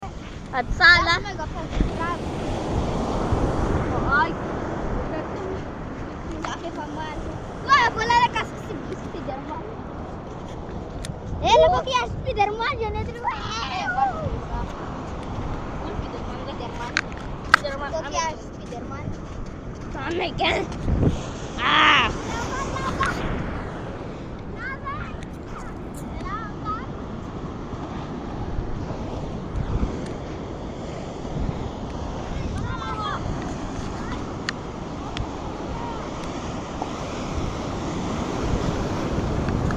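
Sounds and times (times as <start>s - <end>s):
ocean waves on a beach: 0.0s - 39.7s
people laughing on a beach: 22.4s - 23.4s.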